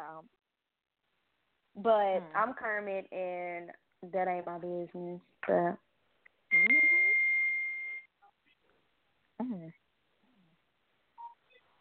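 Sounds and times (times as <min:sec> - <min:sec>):
speech: 0:01.8 - 0:05.9, 0:06.5 - 0:06.8, 0:09.4 - 0:09.8
iPhone beeping on a house balcony: 0:06.5 - 0:08.1
vocal sounds: 0:09.4 - 0:09.8.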